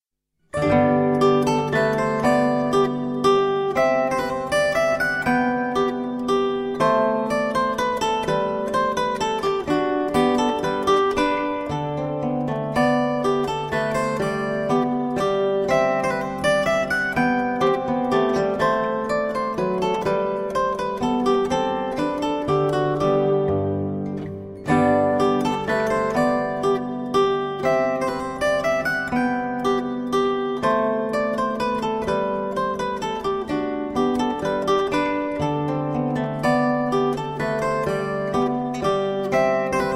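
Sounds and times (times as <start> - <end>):
zither: 0.6 - 39.9.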